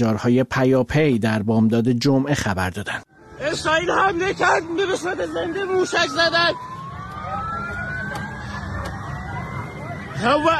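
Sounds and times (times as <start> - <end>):
speech: 0.0 - 6.7, 10.2 - 10.5
air raid siren wailing: 3.1 - 10.5.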